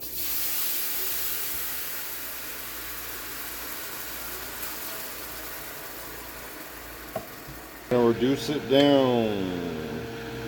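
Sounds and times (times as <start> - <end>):
beans sizzling in hot butter: 0.0 - 8.0
speech: 7.9 - 9.7.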